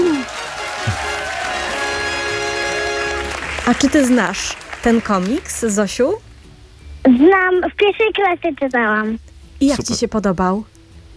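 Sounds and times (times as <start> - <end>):
fanfare: 0.0 - 3.9
applause: 0.0 - 5.8
speech: 3.7 - 6.3, 7.0 - 10.7.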